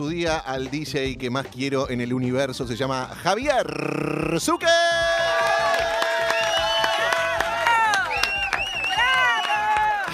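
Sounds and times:
speech: 0:00.0 - 0:05.3
crowd in the stands applauding: 0:04.5 - 0:10.1.

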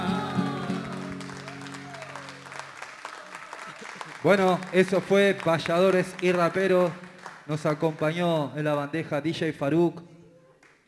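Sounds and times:
audience applause: 0:00.0 - 0:08.0
speech: 0:04.2 - 0:10.1.

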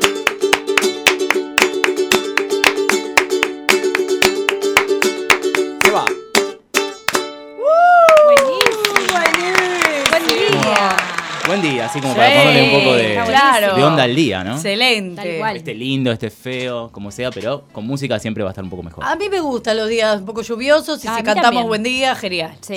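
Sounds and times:
hands clapping in a steady beat: 0:00.0 - 0:07.3, 0:08.0 - 0:12.8
people talking and exclaiming: 0:07.6 - 0:14.3
speech: 0:13.6 - 0:22.7.

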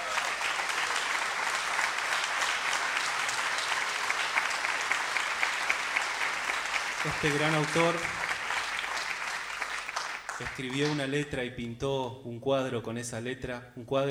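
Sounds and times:
audience applause: 0:00.0 - 0:11.1
speech: 0:07.0 - 0:08.2, 0:10.4 - 0:14.0.

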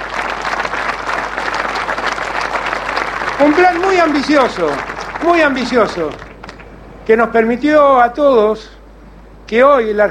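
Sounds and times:
applause: 0:00.0 - 0:06.7
speech: 0:03.4 - 0:06.2, 0:07.1 - 0:08.8, 0:09.5 - 0:10.1.

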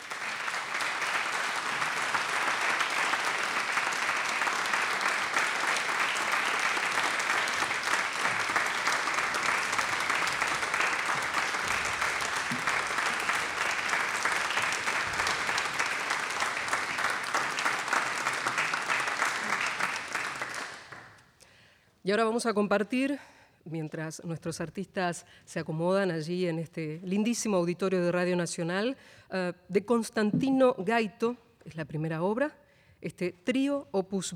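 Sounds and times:
audience applause welcoming musicians: 0:00.0 - 0:21.2
speech: 0:22.1 - 0:34.3.

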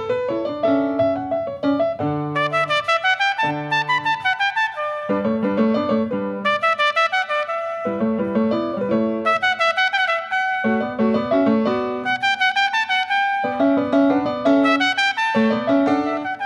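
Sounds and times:
piano in a sonata: 0:00.0 - 0:16.4
trumpet in a sonata: 0:02.0 - 0:16.4.

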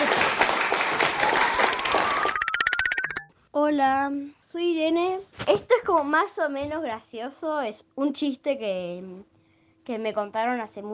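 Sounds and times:
applause from a small group: 0:00.0 - 0:03.1
speech: 0:03.7 - 0:09.3, 0:09.9 - 0:10.9.

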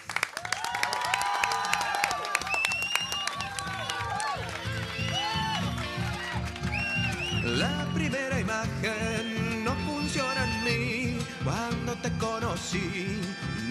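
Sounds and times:
crowd applauding: 0:00.0 - 0:09.3
voices calling and cheering: 0:00.6 - 0:10.8
speech: 0:08.6 - 0:13.6.

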